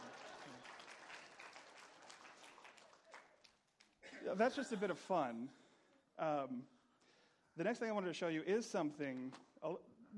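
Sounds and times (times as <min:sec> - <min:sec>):
applause: 0:00.0 - 0:04.0
speech: 0:04.2 - 0:05.6, 0:06.2 - 0:06.8, 0:07.6 - 0:10.1.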